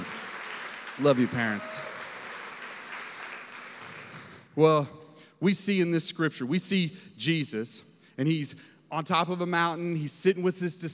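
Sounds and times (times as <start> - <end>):
audience hand clapping: 0.0 - 4.5
speech: 1.0 - 2.0, 4.6 - 10.9.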